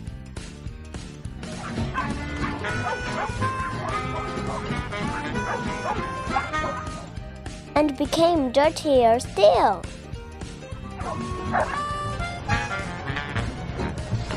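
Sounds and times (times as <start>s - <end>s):
dogs barking and yipping: 1.4s - 7.2s, 10.8s - 13.4s
dogs whimpering: 1.6s - 7.1s, 10.9s - 12.9s
speech: 7.8s - 10.0s, 11.5s - 11.8s.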